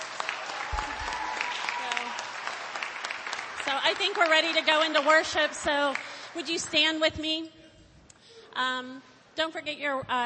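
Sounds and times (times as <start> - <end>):
audience applause: 0.0 - 6.5
speech: 3.7 - 7.6, 8.6 - 10.2.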